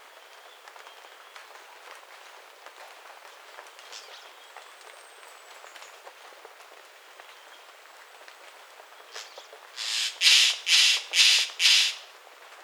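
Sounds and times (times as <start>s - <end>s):
bird giving harsh raspy squawks: 9.8s - 12.0s.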